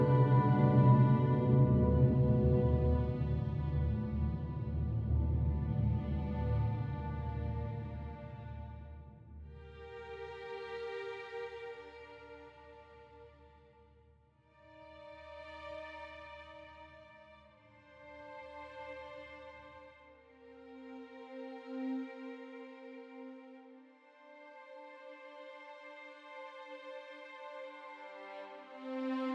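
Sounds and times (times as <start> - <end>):
cinematic music: 0.0 - 8.8.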